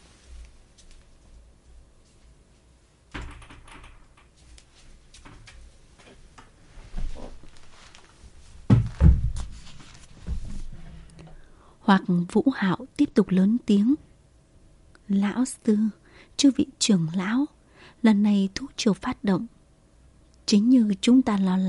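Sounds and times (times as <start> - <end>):
door being closed: 3.1 - 4.4, 8.7 - 9.5
speech: 11.9 - 14.1, 15.1 - 19.6, 20.5 - 21.6.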